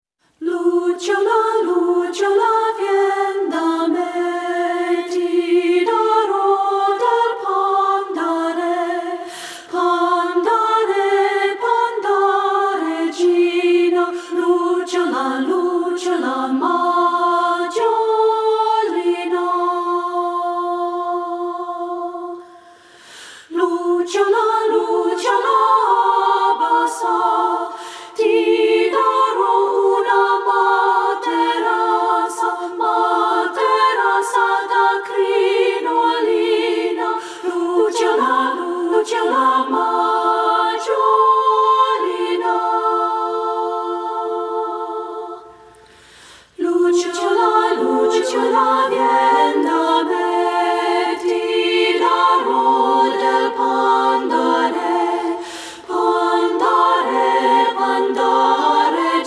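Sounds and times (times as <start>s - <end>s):
a cappella Italian folk songs: 0.2s - 59.2s.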